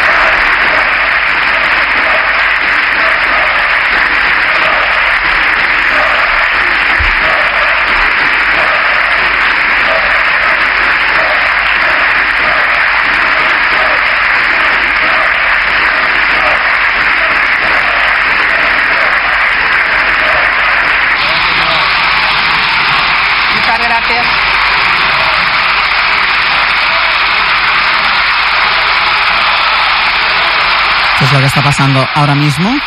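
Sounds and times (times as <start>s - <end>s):
Grupo Socialista applause: 0.0s - 32.8s
parliament benches shouting: 0.0s - 32.8s
speech: 31.6s - 32.8s.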